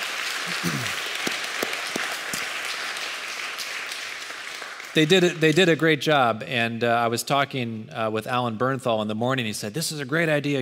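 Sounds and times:
crowd applauding: 0:00.0 - 0:05.6
speech: 0:05.0 - 0:10.6.

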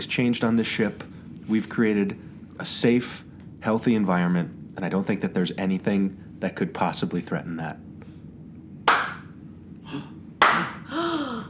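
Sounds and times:
speech: 0:00.0 - 0:07.9
balloons being popped: 0:08.9 - 0:09.3
breathy vocal squeal: 0:09.9 - 0:11.4.

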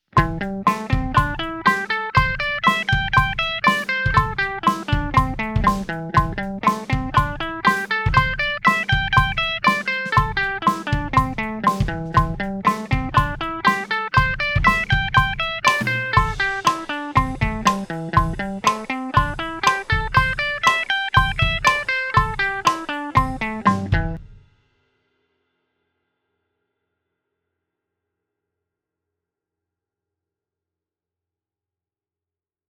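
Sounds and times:
guitar eighth notes in A minor at 120 bpm: 0:00.2 - 0:24.2.

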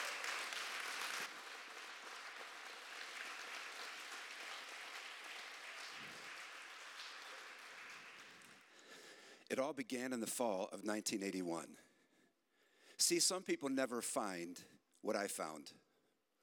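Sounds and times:
church audience applauding as a guest speaker is welcomed to the stage: 0:00.0 - 0:08.7
speech: 0:09.5 - 0:11.9, 0:13.0 - 0:15.8.

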